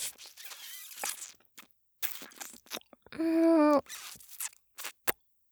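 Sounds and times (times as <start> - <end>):
ASMR kissing sounds: 0.0 - 2.8, 3.7 - 5.2.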